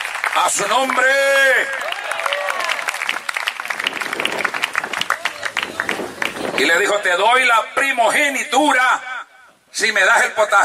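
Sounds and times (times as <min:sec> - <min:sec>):
audience applause: 0:00.0 - 0:06.7
speech: 0:00.4 - 0:02.0, 0:06.6 - 0:09.1, 0:09.8 - 0:10.6.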